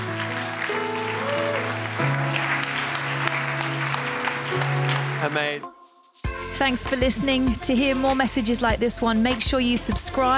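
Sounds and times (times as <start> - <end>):
audience applause: 0.0 - 5.6
speech: 5.3 - 5.8, 6.6 - 10.3.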